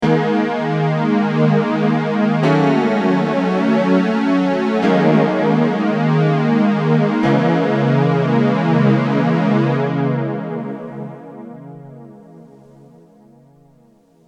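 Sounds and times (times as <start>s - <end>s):
Ibanez guitar with FL99 flanger: 0.0s - 11.4s.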